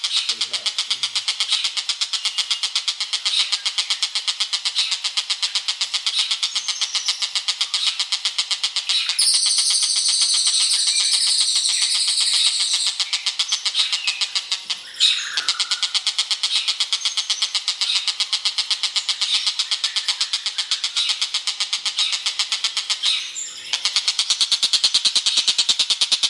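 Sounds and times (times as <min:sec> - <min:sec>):
bird song of bright chirps and short whistled phrases: 0:00.0 - 0:08.1, 0:08.8 - 0:26.2.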